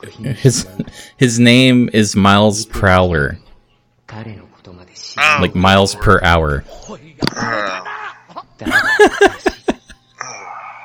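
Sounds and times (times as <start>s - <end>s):
speech: 0.0s - 3.4s, 4.1s - 4.4s, 5.0s - 7.9s, 8.6s - 9.6s
person groaning at a pun: 7.3s - 8.2s, 10.2s - 10.8s
person laughing: 7.8s - 10.0s.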